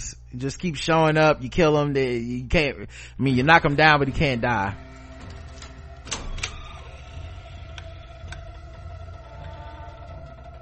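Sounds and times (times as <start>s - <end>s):
speech: 0.3s - 4.9s
door creaking: 3.9s - 10.6s.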